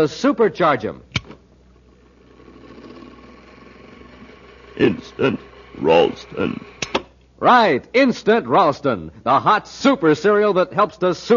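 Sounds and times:
speech: 0:00.0 - 0:01.1, 0:04.8 - 0:06.7, 0:07.4 - 0:11.3
robot mastermind machine working: 0:01.9 - 0:07.0.

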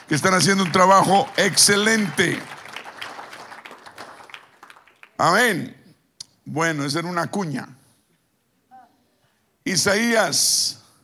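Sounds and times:
audience applause: 0:00.0 - 0:05.4
speech: 0:00.1 - 0:02.6, 0:05.2 - 0:05.8, 0:06.5 - 0:07.8, 0:09.6 - 0:10.8.

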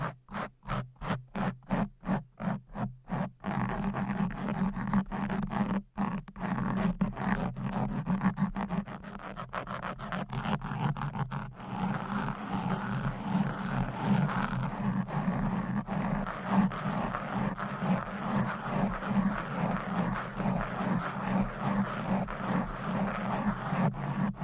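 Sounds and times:
fast microphone scratching with covers and nails: 0:00.0 - 0:24.4.

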